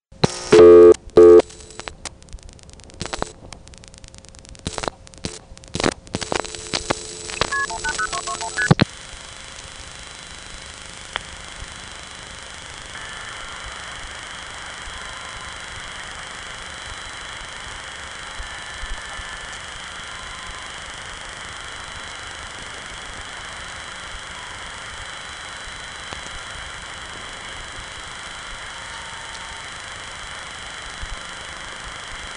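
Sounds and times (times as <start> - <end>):
steady hiss from a silent telephone line: 0.2 - 1.9, 3.0 - 32.3
touch-tone beeps dialing 180-221: 0.6 - 1.5, 7.3 - 8.8.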